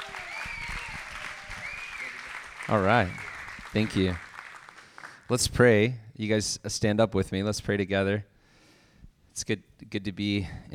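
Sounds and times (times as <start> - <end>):
audience round of applause: 0.0 - 5.3
speech: 2.7 - 4.3, 5.3 - 8.3, 9.4 - 10.7.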